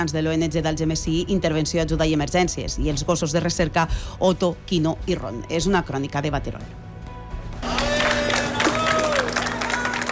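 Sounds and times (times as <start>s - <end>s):
speech: 0.0s - 6.8s
crowd applauding returning volunteers: 7.6s - 10.1s
scattered cheers: 7.6s - 10.1s.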